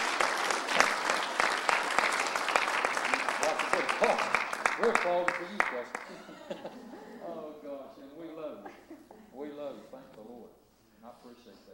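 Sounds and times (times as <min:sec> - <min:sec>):
audience applause: 0:00.0 - 0:06.8
speech: 0:04.8 - 0:06.9
laughter: 0:05.8 - 0:09.9.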